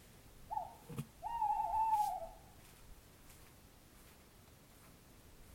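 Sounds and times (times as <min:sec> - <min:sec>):
owl hooting: 0:00.5 - 0:02.5.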